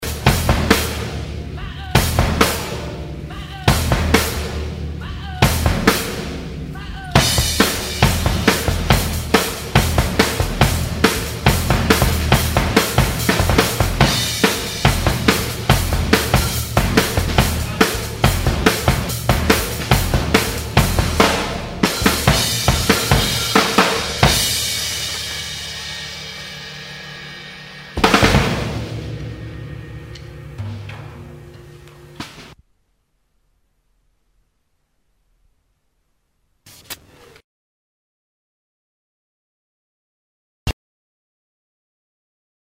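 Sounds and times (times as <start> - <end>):
drum outtakes: 0.0 - 32.6.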